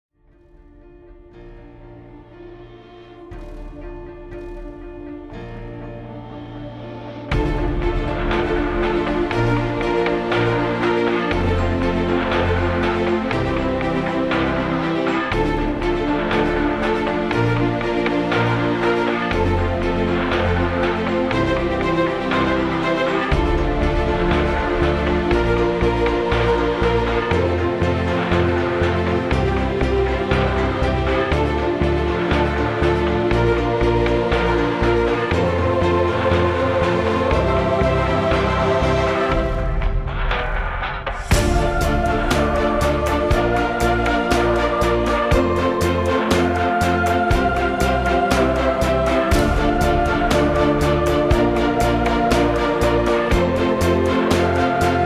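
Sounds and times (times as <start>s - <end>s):
epic trailer music: 0.2s - 55.0s.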